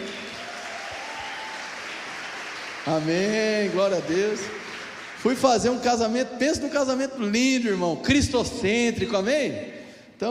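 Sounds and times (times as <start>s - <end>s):
audience applause: 0.0s - 5.5s
speech: 2.8s - 4.6s, 5.2s - 10.3s.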